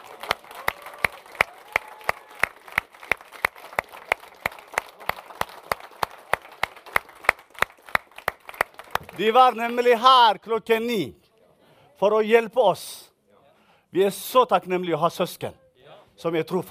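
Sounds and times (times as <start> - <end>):
audience standing and clapping: 0.0 - 10.0
speech: 9.2 - 11.2, 12.0 - 13.1, 13.9 - 15.6, 16.2 - 16.6.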